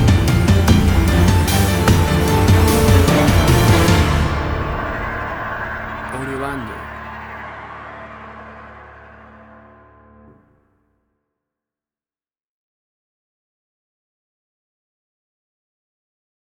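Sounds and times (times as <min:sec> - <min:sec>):
action trailer music cue: 0:00.0 - 0:10.5.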